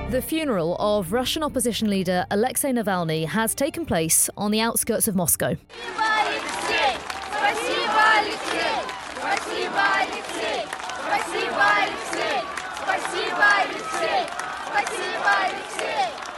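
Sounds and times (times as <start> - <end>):
speech: 0.1 - 6.1
large crowd chanting thanks at Alexei Navalny's funeral near Moscow: 5.7 - 16.3.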